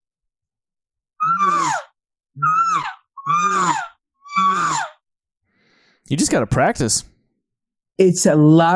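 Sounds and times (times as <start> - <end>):
imitated elk cow calls with throat-clearing buzz: 1.2 - 5.0
speech: 6.1 - 7.1, 8.0 - 8.7.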